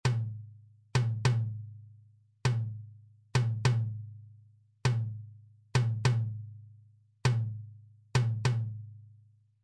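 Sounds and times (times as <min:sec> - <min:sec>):
medium surdo drum: 0:00.0 - 0:01.7, 0:02.4 - 0:04.1, 0:04.8 - 0:06.5, 0:07.2 - 0:08.9.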